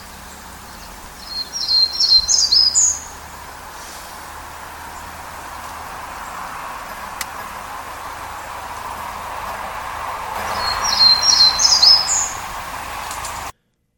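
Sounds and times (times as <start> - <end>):
Townsend's Warbler song: 0.0 - 13.5
faint hiss: 0.0 - 13.5.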